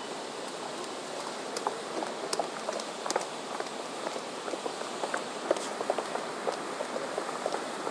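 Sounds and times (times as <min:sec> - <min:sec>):
footsteps of many people running: 0:00.1 - 0:07.8.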